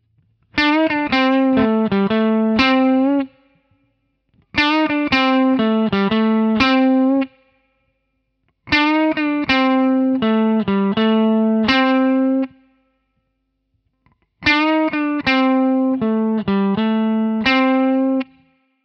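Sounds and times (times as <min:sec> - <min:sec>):
guitar lick: 0:00.5 - 0:03.5, 0:04.5 - 0:07.4, 0:08.7 - 0:12.6, 0:14.4 - 0:18.5.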